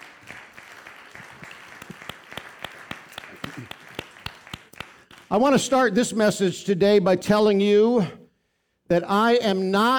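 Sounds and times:
audience clapping: 0:00.0 - 0:05.8
speech: 0:05.3 - 0:08.2, 0:08.9 - 0:09.9.

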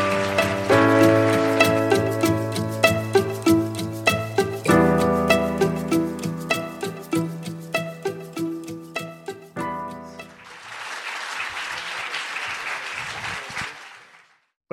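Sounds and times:
crowd clapping: 0:00.0 - 0:03.6, 0:10.2 - 0:14.5
upbeat music: 0:00.0 - 0:10.4.

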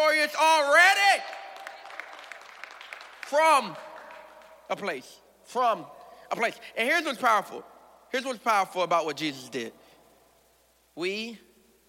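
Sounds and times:
speech: 0:00.0 - 0:01.4, 0:03.3 - 0:03.9, 0:04.7 - 0:09.8, 0:11.0 - 0:11.5
audience clapping hands: 0:01.0 - 0:05.1.

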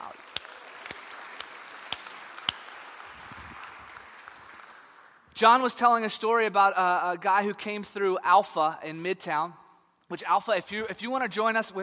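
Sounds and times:
crowd applause: 0:00.0 - 0:05.2
speech: 0:05.4 - 0:11.8.

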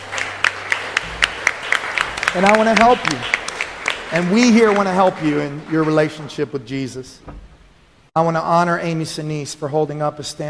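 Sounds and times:
audience applause: 0:00.0 - 0:06.1
speech: 0:02.3 - 0:03.4, 0:04.1 - 0:07.4, 0:08.2 - 0:10.4.

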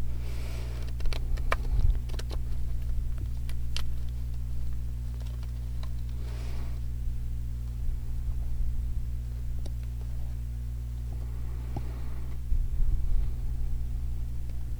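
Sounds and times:
steady low electrical hum: 0:00.0 - 0:14.7
cards being shuffled: 0:00.3 - 0:06.2.

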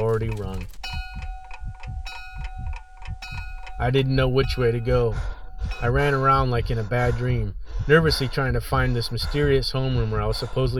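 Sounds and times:
clock ticking: 0:00.0 - 0:10.7
low constant electrical hum: 0:00.0 - 0:10.7
speech: 0:00.2 - 0:00.9, 0:03.8 - 0:10.7.

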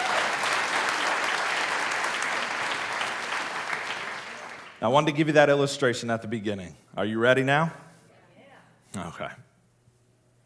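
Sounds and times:
crowd applause and hand clapping: 0:00.0 - 0:05.0
speech: 0:04.8 - 0:07.8, 0:08.9 - 0:09.5.

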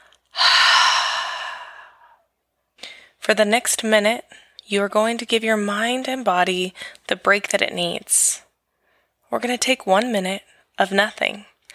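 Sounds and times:
long exhale during a guided breathing exercise: 0:00.4 - 0:02.2
speech: 0:03.3 - 0:08.4, 0:09.3 - 0:11.7.

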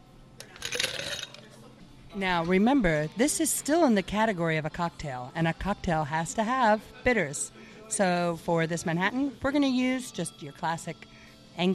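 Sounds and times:
ice cubes dropped into a mixing glass: 0:00.4 - 0:01.5
speech: 0:02.1 - 0:11.7.

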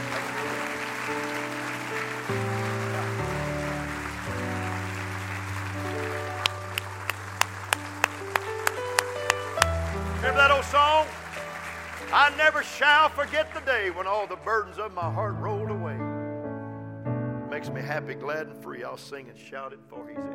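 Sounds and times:
audience clapping hands loudly: 0:00.0 - 0:14.9
speech: 0:12.1 - 0:15.6, 0:17.6 - 0:20.3.

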